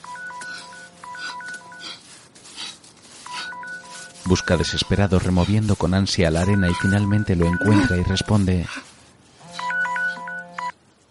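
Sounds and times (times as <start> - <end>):
mobile phone ringing tone: 0.0 - 2.0, 6.4 - 8.2, 9.5 - 10.8
speech: 4.3 - 8.9.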